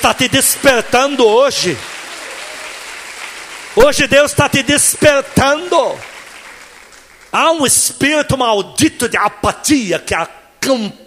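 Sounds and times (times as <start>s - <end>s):
speech: 0.0s - 1.9s, 3.8s - 6.1s, 7.3s - 11.0s
audience applauding loudly: 1.0s - 7.6s.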